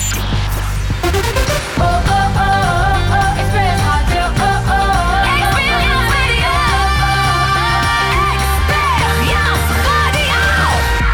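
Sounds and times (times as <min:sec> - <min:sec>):
sung pop rock radio jingle: 0:00.2 - 0:10.9.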